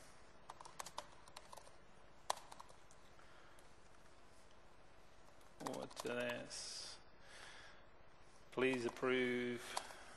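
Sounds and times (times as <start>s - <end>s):
computer keyboard typing notes into an order request: 0.4s - 3.7s, 5.2s - 6.5s, 8.6s - 10.1s
speech: 5.6s - 6.8s, 8.5s - 9.8s.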